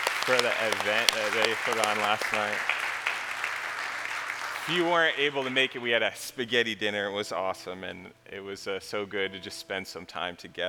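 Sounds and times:
audience hand clapping: 0.0s - 5.9s
speech: 0.3s - 2.8s, 4.7s - 10.6s.

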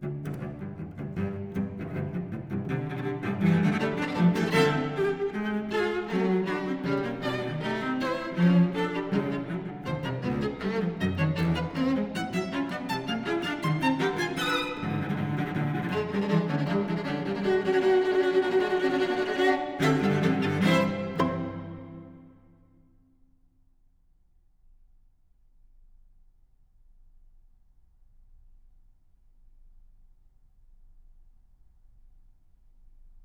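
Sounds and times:
sonata for violin and cello, lively movement: 0.0s - 22.6s.

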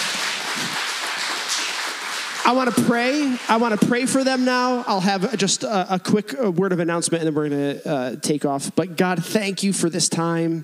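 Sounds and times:
applause: 0.0s - 5.4s
speech: 2.4s - 10.6s.

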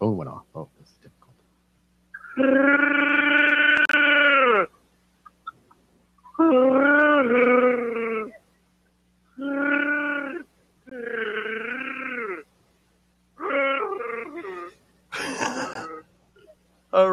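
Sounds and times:
person imitating a Wookiee roar: 2.3s - 4.7s, 6.4s - 8.4s, 9.4s - 12.5s, 13.4s - 14.7s.

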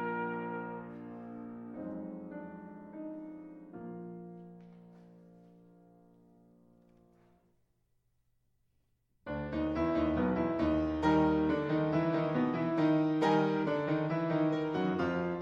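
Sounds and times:
classical trumpet concerto: 0.0s - 3.5s, 9.3s - 15.4s.

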